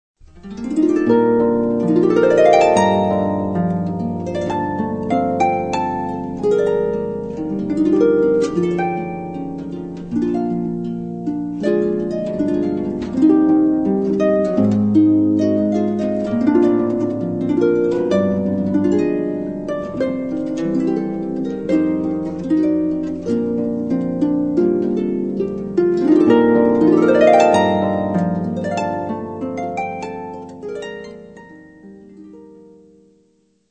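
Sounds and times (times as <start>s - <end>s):
solo harp: 0.2s - 33.5s.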